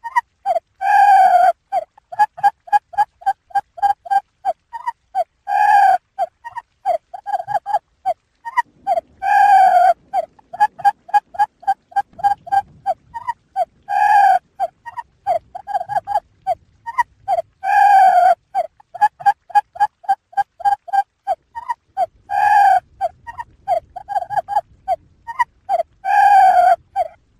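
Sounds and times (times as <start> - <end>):
quail harsh squawks: 0.0 - 2.6, 8.5 - 16.2, 16.9 - 24.6, 25.3 - 27.2
quail chattering: 0.0 - 7.8, 8.5 - 16.2, 16.9 - 27.2.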